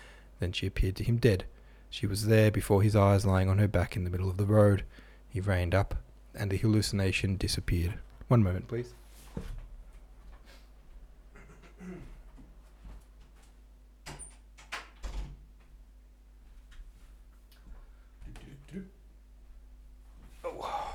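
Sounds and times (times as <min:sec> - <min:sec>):
speech: 0:00.4 - 0:09.5
door closing: 0:14.0 - 0:15.4.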